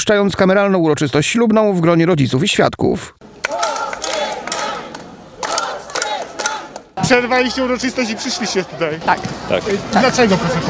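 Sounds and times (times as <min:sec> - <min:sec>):
speech: 0:00.0 - 0:03.3, 0:07.0 - 0:10.6
protest crowd chanting in street: 0:03.2 - 0:10.6.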